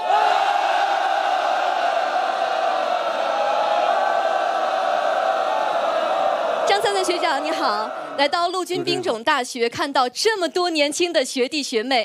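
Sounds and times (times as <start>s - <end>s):
applause from a large audience: 0.0s - 9.0s
speech: 6.8s - 12.0s.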